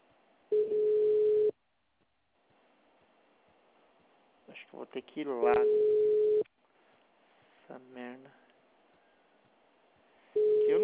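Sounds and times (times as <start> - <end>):
telephone beep after a dropped call: 0.5 - 1.5, 5.6 - 6.4, 10.4 - 10.8
speech: 4.6 - 6.1, 7.8 - 8.5.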